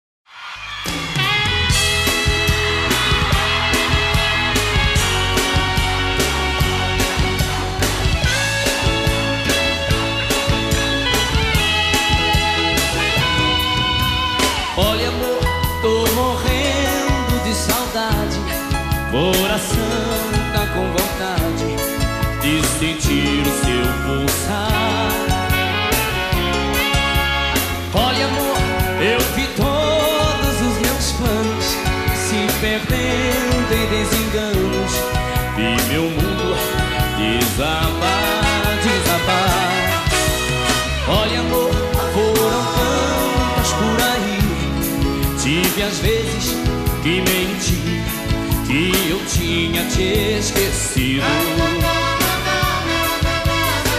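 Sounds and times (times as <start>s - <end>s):
classic sertanejo music: 0.4s - 53.9s.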